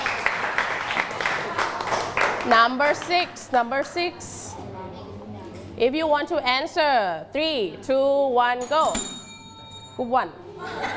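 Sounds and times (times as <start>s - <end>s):
classroom clapping for group five: 0.0s - 3.2s
speech: 2.5s - 4.7s, 5.8s - 9.2s, 10.0s - 10.9s
laughter: 10.5s - 10.9s.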